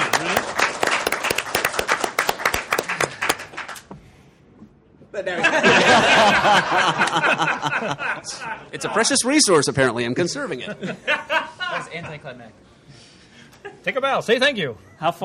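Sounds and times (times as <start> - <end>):
audience clapping: 0.0 - 3.9
speech: 5.2 - 12.7, 13.8 - 15.2
crowd cheering and laughing: 5.3 - 8.6.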